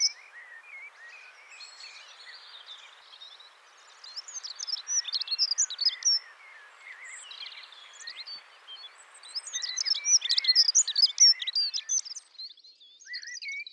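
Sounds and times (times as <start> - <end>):
dunnock calling: 0.0 - 12.3.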